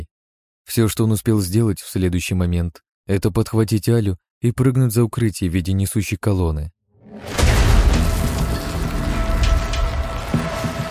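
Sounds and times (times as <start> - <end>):
speech: 0.7 - 7.4
explosion with loud cracking stone shrapnel: 7.0 - 10.8.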